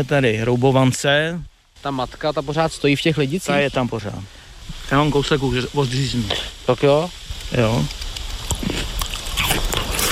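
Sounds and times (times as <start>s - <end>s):
speech: 0.0s - 8.0s
moist chewing: 7.3s - 10.0s
biting into a tart unripe Lidice pear: 7.4s - 10.0s.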